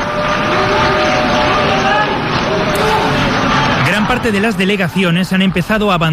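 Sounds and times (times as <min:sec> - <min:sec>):
delegations applauding in UN General Assembly hall: 0:00.0 - 0:04.8
delegations protesting in UN General Assembly hall: 0:00.0 - 0:06.1
speech: 0:04.1 - 0:06.1.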